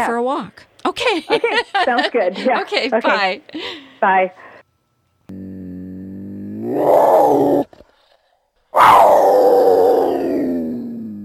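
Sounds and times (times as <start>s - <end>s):
speech: 0.0s - 4.4s, 6.7s - 7.7s
cougar (Puma concolor, mountain lion) groaning call: 6.5s - 7.7s, 8.8s - 10.9s.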